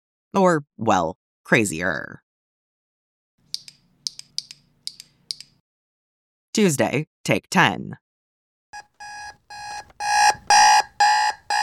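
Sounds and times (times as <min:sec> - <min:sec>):
speech: 0:00.3 - 0:02.2, 0:06.6 - 0:08.0
alarm clock ringing: 0:08.8 - 0:11.6.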